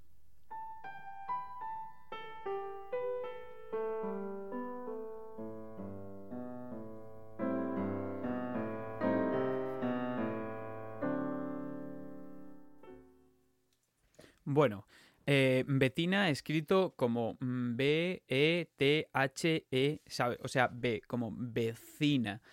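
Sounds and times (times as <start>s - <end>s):
ragtime waltz melody played on a tonal instrument: 0.5s - 13.5s
speech: 14.6s - 22.5s.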